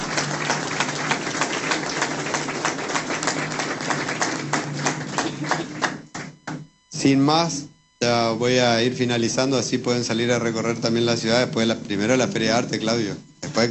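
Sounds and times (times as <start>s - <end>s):
audience applause: 0.0s - 6.4s
speech: 7.0s - 13.6s.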